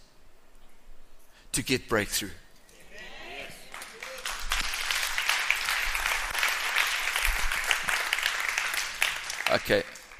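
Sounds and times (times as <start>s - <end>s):
speech: 1.6s - 2.4s, 9.5s - 10.0s
enthusiastic audience clapping: 3.6s - 10.1s.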